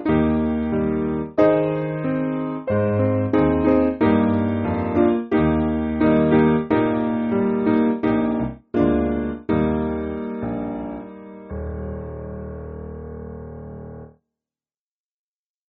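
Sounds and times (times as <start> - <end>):
piano piece: 0.0 - 14.1.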